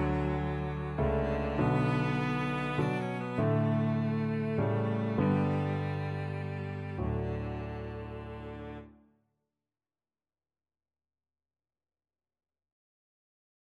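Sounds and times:
flute and cello duet: 0.0 - 8.8.

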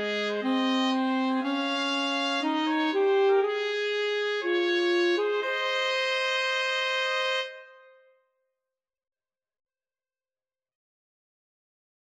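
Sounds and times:
wedding march played by trumpet and alto saxophone duet: 0.0 - 8.0.

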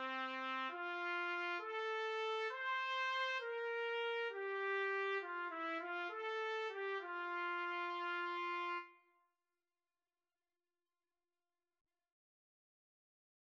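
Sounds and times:
trumpet duet: 0.0 - 9.0.

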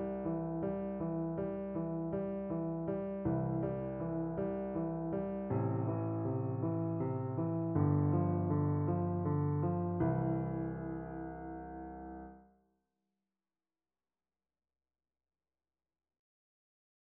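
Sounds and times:
piano duet: 0.0 - 12.4.

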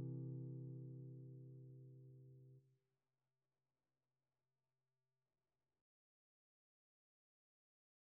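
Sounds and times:
guitar: 0.0 - 2.6.

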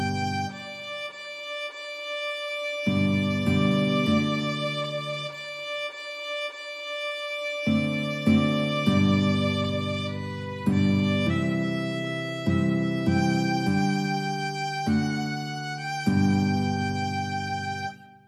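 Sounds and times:
guitar: 0.0 - 1.0, 2.8 - 5.4, 7.6 - 18.2
violin: 0.0 - 18.2.

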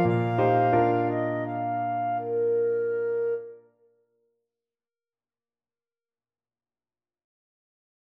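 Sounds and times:
clarinet playing a song: 0.0 - 3.9.

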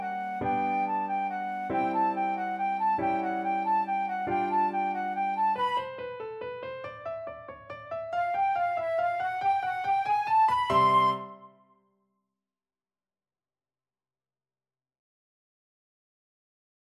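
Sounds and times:
flute playing a waltz: 0.0 - 6.2, 8.2 - 11.7.

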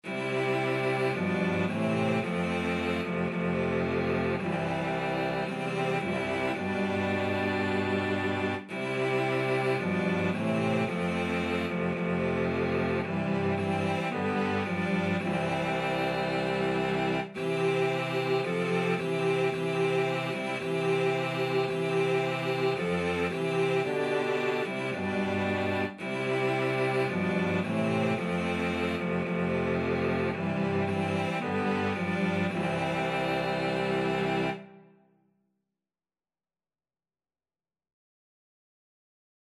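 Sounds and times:
cello quartet: 0.0 - 35.0.

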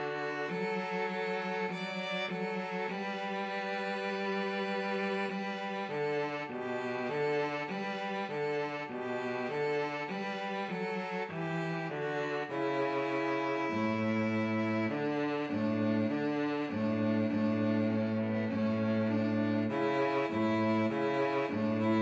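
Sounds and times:
violin and cello duet: 0.0 - 22.0.

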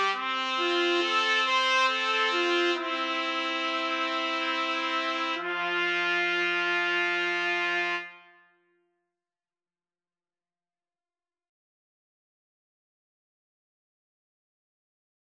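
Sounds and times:
trumpet trio: 0.0 - 8.5.

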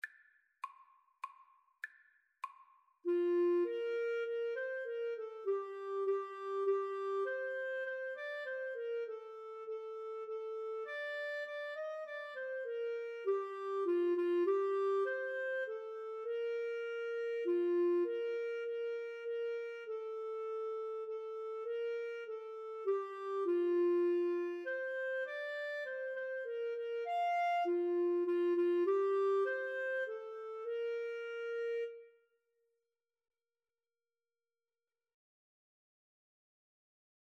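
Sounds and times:
saxophone: 3.1 - 32.2
clarinet: 3.1 - 32.4.

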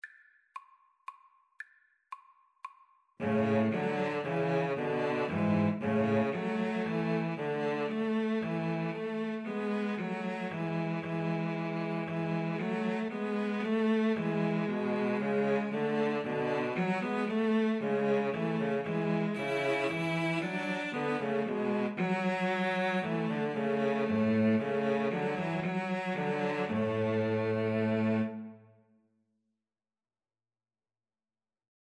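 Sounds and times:
string trio playing: 3.2 - 28.6.

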